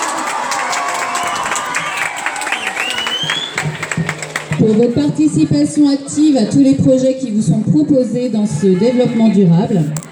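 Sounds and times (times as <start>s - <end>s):
crowd cheering and whooping: 0.0s - 4.0s
crowd applauding: 0.0s - 5.0s
speech: 4.7s - 10.1s.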